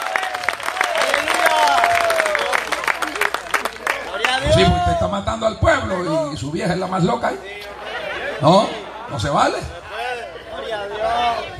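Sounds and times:
audience applause: 0.0 - 4.8
speech: 4.9 - 7.6, 8.4 - 9.8.

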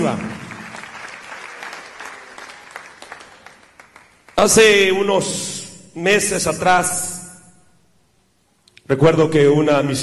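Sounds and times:
speech: 0.0 - 0.3, 4.4 - 7.2, 8.9 - 10.0
audience applause: 0.0 - 4.4.

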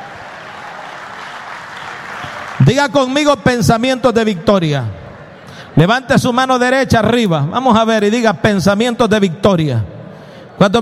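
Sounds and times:
church congregation clapping during a Spanish-language service: 0.0 - 3.8
speech: 2.6 - 5.0, 5.8 - 9.9, 10.6 - 10.8.

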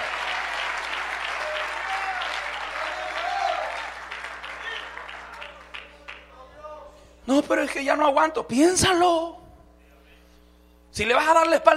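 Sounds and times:
audience applauding: 0.0 - 6.3
speech: 7.3 - 9.4, 11.0 - 11.7.

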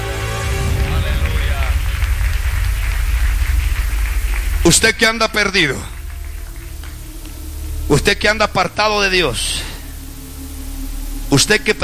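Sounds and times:
audience clapping: 0.0 - 8.7
speech: 4.7 - 5.9, 8.0 - 9.7, 11.3 - 11.8.

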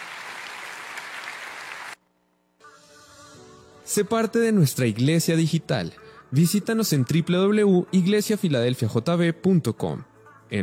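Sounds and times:
audience applause: 0.0 - 2.0
soft sustained music tones: 2.6 - 10.6
speech: 3.9 - 10.6.

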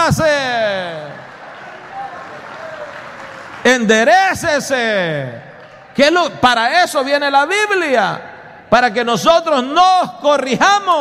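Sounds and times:
audience applause: 0.7 - 4.2
speech: 3.6 - 5.4, 6.0 - 11.0.

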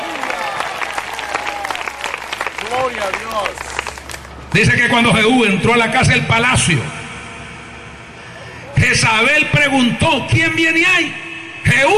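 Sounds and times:
crowd shouting and cheering: 0.0 - 3.9
audience applause: 0.0 - 4.5
speech: 2.7 - 3.8, 4.5 - 7.0, 9.0 - 11.9.

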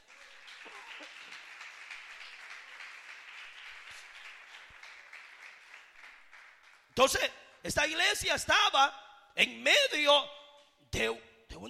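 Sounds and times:
audience applause: 0.0 - 7.0
speech: 7.0 - 11.6.

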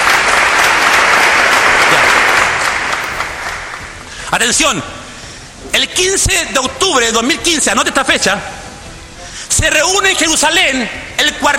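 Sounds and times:
church audience applause: 0.0 - 4.1
speech: 4.3 - 5.0, 5.7 - 8.6, 9.5 - 11.5.

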